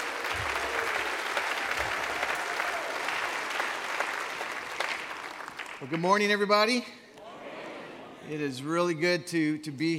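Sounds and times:
audience applause welcoming a speaker at a church service: 0.0 - 6.0
speech: 5.8 - 7.0, 8.3 - 9.9.

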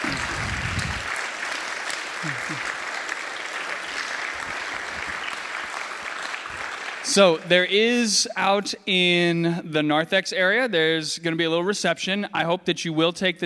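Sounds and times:
round of applause: 0.0 - 7.6
speech: 2.2 - 2.8, 7.1 - 13.4.

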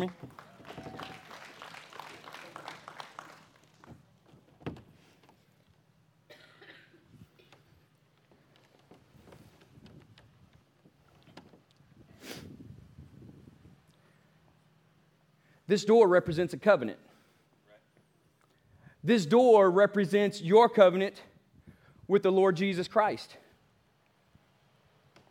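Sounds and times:
audience clapping: 0.0 - 4.3
coughs: 6.3 - 7.7
throat clearing: 6.3 - 7.8
speech: 15.7 - 17.1, 19.1 - 21.3, 22.1 - 23.4.

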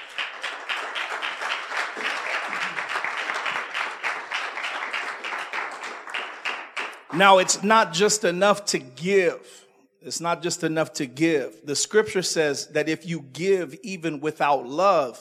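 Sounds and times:
audience applause: 0.0 - 7.6
speech: 7.1 - 15.2.

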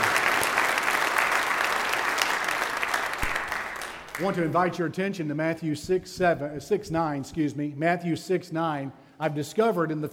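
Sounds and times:
audience applause: 0.0 - 4.6
speech: 4.2 - 10.1.

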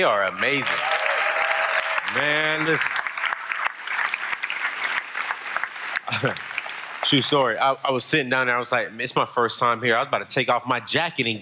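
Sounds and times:
speech: 0.0 - 1.0, 2.1 - 3.0, 6.1 - 11.4
audience applause: 0.2 - 7.5
laughter: 6.0 - 6.5.

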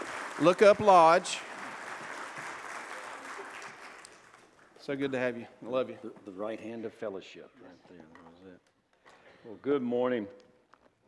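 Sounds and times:
audience applause welcoming a guest speaker: 0.0 - 4.8
speech: 0.4 - 1.5, 4.8 - 8.7, 9.4 - 10.4.

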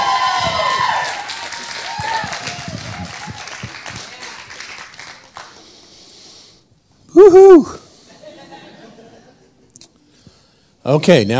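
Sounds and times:
standing audience applauding a couple coming to the platform: 0.0 - 5.8
speech: 7.2 - 7.8, 10.9 - 11.3
laughter: 8.0 - 9.8.

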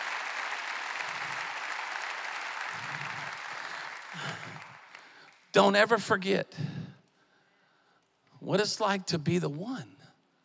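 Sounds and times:
audience clapping hands: 0.0 - 5.8
speech: 5.5 - 6.8, 8.5 - 10.0.

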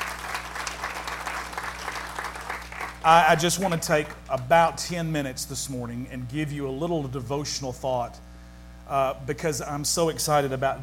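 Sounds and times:
crowd applause: 0.0 - 4.5
low constant hum: 0.0 - 10.8
speech: 3.0 - 8.3, 8.9 - 10.8.

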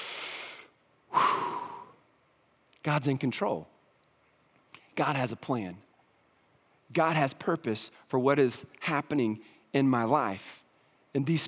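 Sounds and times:
deep breaths: 0.0 - 2.0
speech: 2.8 - 3.7, 5.0 - 5.9, 6.9 - 11.4.

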